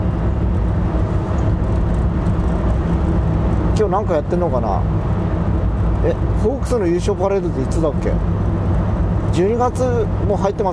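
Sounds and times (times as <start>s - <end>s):
car driving through a tunnel: 0.0s - 10.7s
speech: 3.8s - 5.2s, 6.0s - 8.5s, 9.3s - 10.7s.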